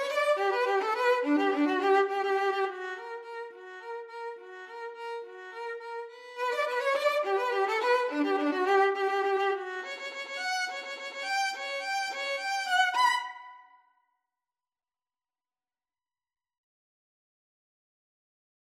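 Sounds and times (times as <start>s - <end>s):
cello: 0.0s - 13.6s
violin: 0.0s - 13.8s.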